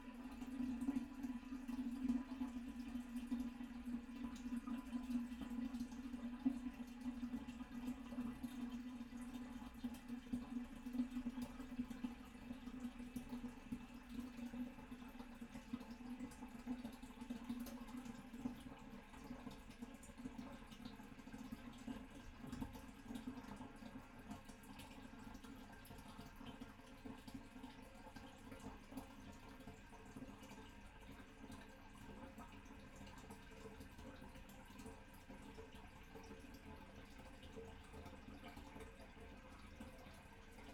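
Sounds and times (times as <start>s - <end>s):
toilet bowl: 0.0s - 40.7s.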